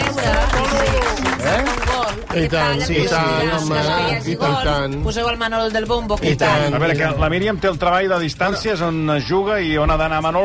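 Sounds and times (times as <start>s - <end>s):
applause: 0.0s - 3.8s
speech: 2.3s - 10.4s.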